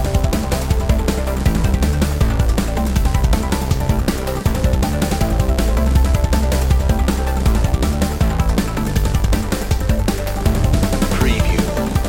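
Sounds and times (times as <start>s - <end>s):
synth music without lead synth: 0.0s - 12.0s.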